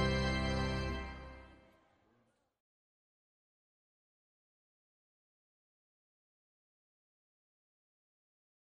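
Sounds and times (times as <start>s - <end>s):
violin and organ wedding march: 0.0s - 1.6s.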